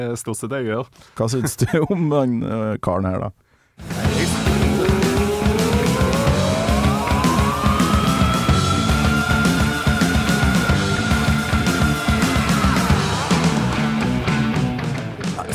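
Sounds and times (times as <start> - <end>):
speech: 0.0 - 5.0
loud dense rock music: 3.8 - 15.5
high-pitched vocal scream in a song: 4.7 - 14.2.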